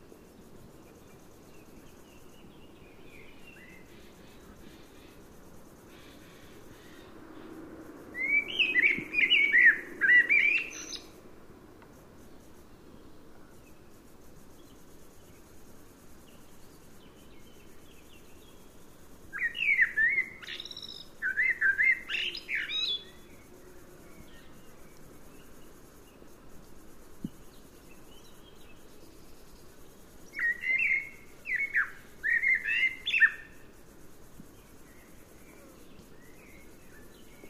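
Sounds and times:
common blackbird singing: 8.2s - 11.1s, 19.4s - 23.3s, 30.3s - 33.5s.

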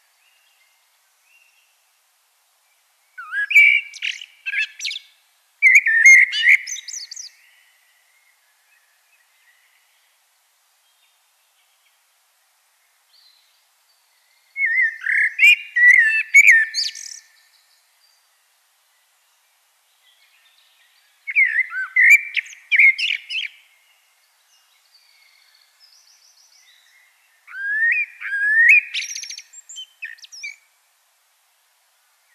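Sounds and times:
common blackbird singing: 3.0s - 10.2s, 13.1s - 19.1s, 19.9s - 30.7s.

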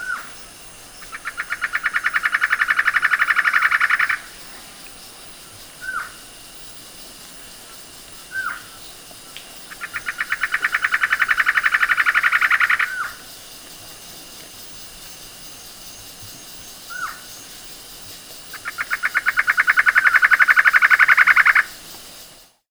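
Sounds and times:
bird calling: 0.0s - 15.8s, 16.4s - 17.7s, 18.4s - 21.9s.

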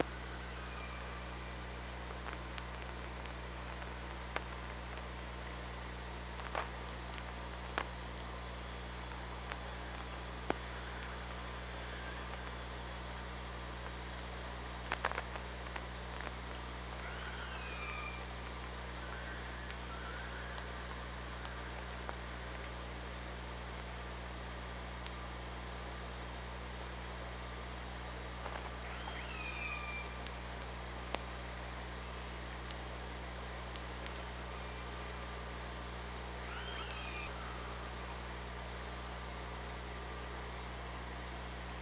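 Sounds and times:
low hydrophone hum: 0.0s - 41.8s
killer whale calls underwater: 17.0s - 18.3s, 18.9s - 21.8s, 36.4s - 37.9s.

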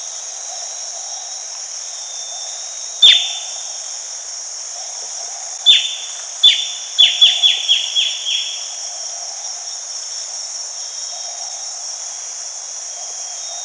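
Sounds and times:
steady hissing background noise: 0.0s - 13.6s
bird calls: 3.0s - 3.6s, 5.2s - 8.8s.

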